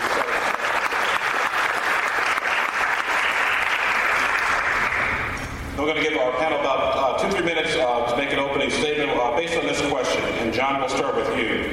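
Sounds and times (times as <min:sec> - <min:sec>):
audience applause: 0:00.0 - 0:05.3
speech: 0:05.8 - 0:11.7.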